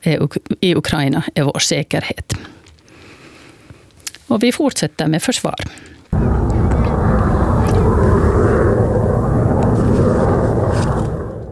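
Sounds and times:
speech: 0.0 - 2.6, 4.3 - 6.3
F-35A fighter jets arriving in Finland: 6.1 - 11.5.

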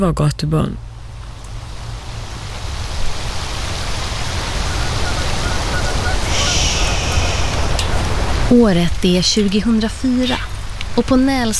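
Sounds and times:
speech: 0.0 - 0.9, 8.5 - 11.5
heavy rain pouring down: 0.8 - 11.5.

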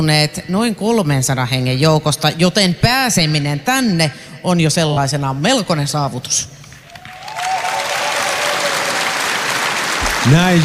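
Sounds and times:
speech: 0.0 - 6.6, 10.3 - 10.6
audience applause for the finalists: 6.9 - 10.6.

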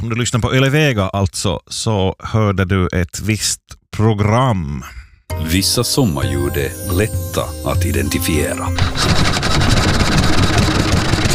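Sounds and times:
speech: 0.0 - 10.1
3.5 horsepower outboard boat motor running: 8.8 - 11.3.

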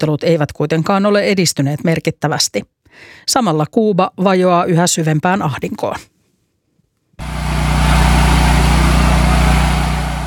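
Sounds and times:
speech: 0.0 - 6.1
electric generator humming in Havana: 7.2 - 10.2.

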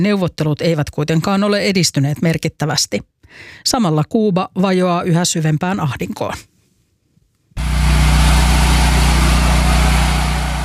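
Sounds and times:
speech: 0.0 - 6.5
electric generator humming in Havana: 7.6 - 10.6.

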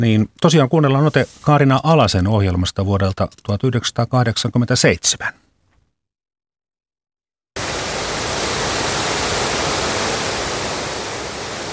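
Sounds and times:
speech: 0.0 - 5.4
rushing river rapids: 7.6 - 11.7.

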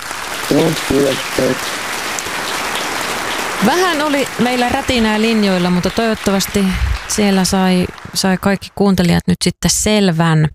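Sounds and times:
applause: 0.0 - 9.2
speech: 0.5 - 1.8, 3.6 - 10.5.

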